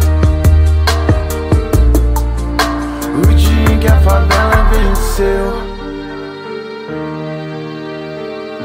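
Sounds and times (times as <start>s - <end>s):
rap music: 0.0s - 6.3s.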